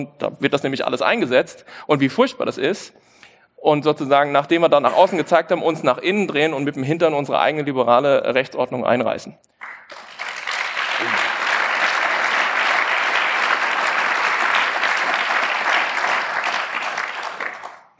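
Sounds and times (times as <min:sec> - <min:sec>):
speech: 0:00.0 - 0:10.1
audience applause: 0:09.6 - 0:17.9.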